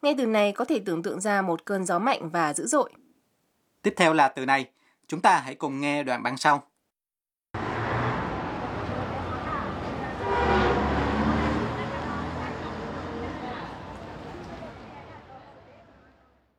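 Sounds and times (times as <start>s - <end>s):
speech: 0.0s - 3.0s, 3.8s - 6.7s
busy traffic roar: 7.6s - 16.5s
indistinct voices: 8.2s - 16.2s
loud sustained vehicle horn blast: 10.1s - 13.2s.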